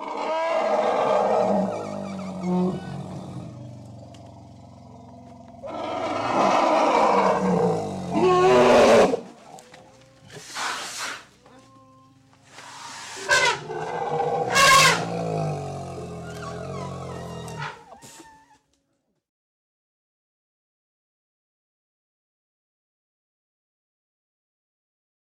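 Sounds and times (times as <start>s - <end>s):
Asian elephant giving loud rough calls in Thailand: 0.0s - 9.3s, 10.3s - 18.5s.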